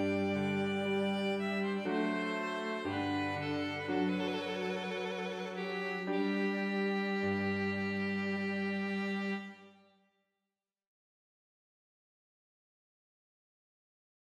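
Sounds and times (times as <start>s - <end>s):
slow air for violin, cello and piano: 0.0s - 9.8s.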